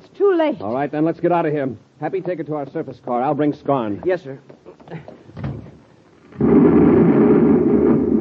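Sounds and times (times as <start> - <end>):
speech: 0.4 - 5.2
explosion: 6.2 - 8.1.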